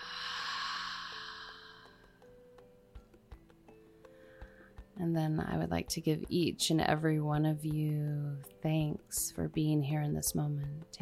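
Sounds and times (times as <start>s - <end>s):
deep breath in and out during a guided meditation: 0.0s - 2.2s, 4.0s - 4.8s
soft sustained tones: 0.0s - 2.6s
speech: 5.0s - 11.0s.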